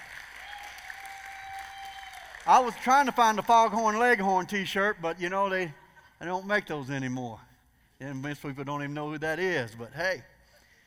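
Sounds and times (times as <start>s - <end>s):
audience applause: 0.0s - 3.5s
speech: 2.4s - 10.3s.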